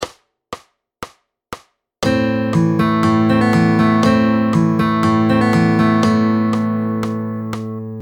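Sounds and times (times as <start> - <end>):
fingerstyle guitar picking pattern: 2.0 - 8.0.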